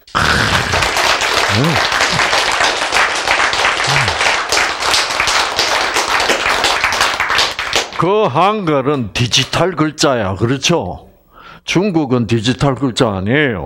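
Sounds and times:
audience clapping: 0:00.0 - 0:08.2
speech: 0:01.6 - 0:02.0, 0:08.0 - 0:11.1, 0:11.7 - 0:13.6.

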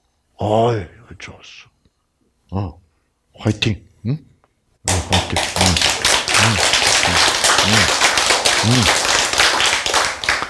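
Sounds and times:
speech: 0:00.4 - 0:01.7, 0:02.5 - 0:02.8, 0:03.4 - 0:08.0, 0:08.6 - 0:09.0
short low vocal sounds: 0:04.9 - 0:09.2
single person clapping steadily: 0:04.9 - 0:10.4.

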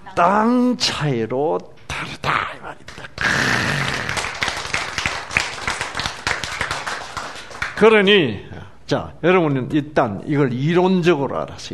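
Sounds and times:
speech: 0:00.1 - 0:04.1, 0:07.8 - 0:11.7
audience applause: 0:03.5 - 0:07.8.

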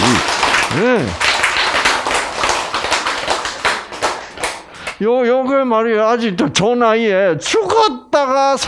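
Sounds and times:
hands clapping: 0:00.0 - 0:05.0
speech: 0:00.8 - 0:01.2, 0:05.0 - 0:08.6.

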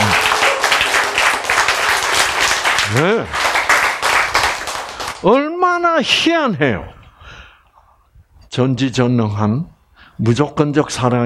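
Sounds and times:
congregation applauding during a church sermon: 0:00.0 - 0:05.3
speech: 0:05.2 - 0:07.0, 0:08.5 - 0:11.2.

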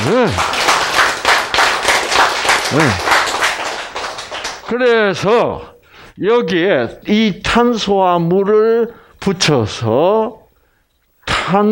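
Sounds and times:
group applause: 0:00.0 - 0:05.0
speech: 0:00.1 - 0:00.7, 0:02.7 - 0:03.1, 0:04.7 - 0:10.4, 0:11.5 - 0:11.6.

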